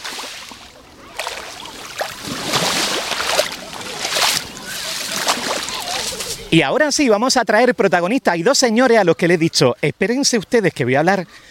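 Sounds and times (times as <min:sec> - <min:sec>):
Mediterranean sea waves on the beach of La Charca: 0:00.0 - 0:06.6
speech: 0:06.5 - 0:11.4.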